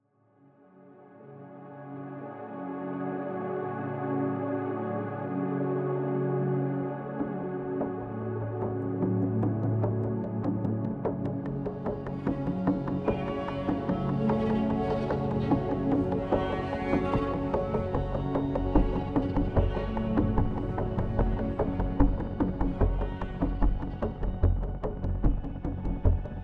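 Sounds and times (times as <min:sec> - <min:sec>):
modular synth: 0:01.6 - 0:26.4
organic percussion: 0:08.6 - 0:26.4.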